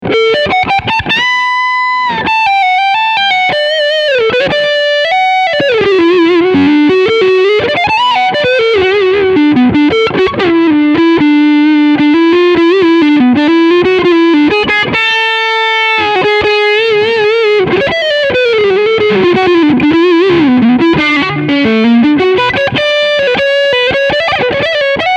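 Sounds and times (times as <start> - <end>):
overdriven electric guitar on front humbucker: 0.0 - 25.1.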